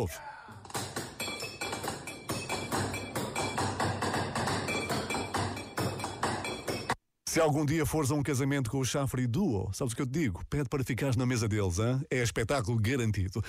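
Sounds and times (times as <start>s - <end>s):
speech: 0.0s - 0.6s, 7.4s - 13.4s
drumming on glasses, plates and cutlery at a table: 0.6s - 7.0s.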